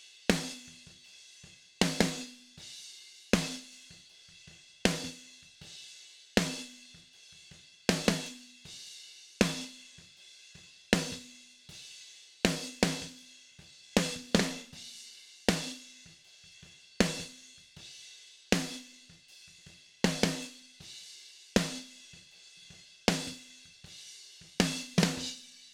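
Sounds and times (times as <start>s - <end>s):
snare drum: 1.8s - 2.4s, 3.4s - 3.9s, 4.9s - 5.4s, 7.9s - 8.4s, 9.4s - 10.2s, 11.0s - 11.3s, 12.5s - 13.2s, 14.0s - 14.8s, 15.5s - 16.0s, 17.0s - 17.4s, 18.5s - 19.3s, 20.0s - 20.7s, 21.6s - 22.3s, 23.1s - 25.7s.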